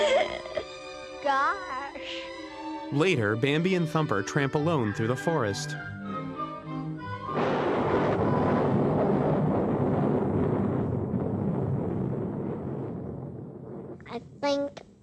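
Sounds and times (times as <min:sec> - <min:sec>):
musical notes: 0:00.6 - 0:09.2
speech: 0:01.3 - 0:06.0
thunder of an approaching storm: 0:07.3 - 0:14.5.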